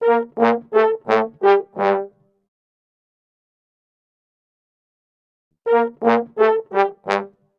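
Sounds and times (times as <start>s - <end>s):
brass in G minor: 0.0s - 2.2s, 5.7s - 7.5s.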